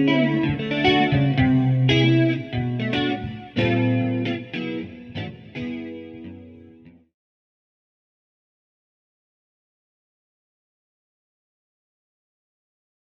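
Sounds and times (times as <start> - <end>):
guitar with flanger effect: 0.0 - 7.1.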